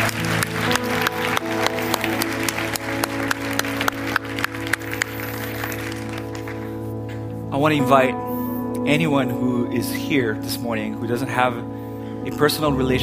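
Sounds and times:
audience clapping: 0.0 - 6.9
speech: 7.6 - 13.0.

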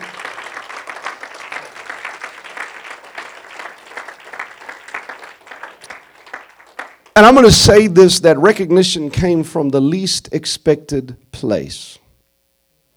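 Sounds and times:
audience clapping: 0.0 - 7.8
speech: 7.2 - 12.0.

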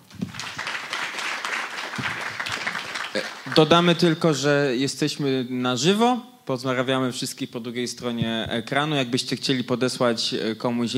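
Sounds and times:
crowd applause: 0.0 - 4.0
speech: 3.1 - 10.9.

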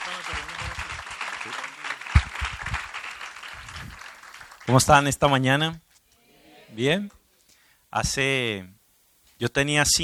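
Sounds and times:
audience applause: 0.0 - 4.8
speech: 4.7 - 5.8, 6.7 - 7.2, 7.9 - 8.8, 9.4 - 10.0
voices calling out: 6.1 - 7.1.

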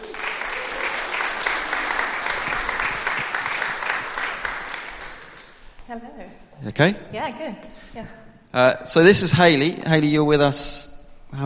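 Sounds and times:
audience applause: 0.0 - 5.6
speech: 5.9 - 11.4.

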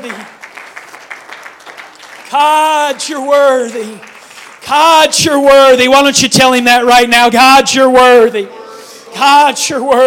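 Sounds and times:
audience clapping hands: 0.0 - 5.2
speech: 2.3 - 4.1, 4.7 - 8.6, 9.2 - 10.0.

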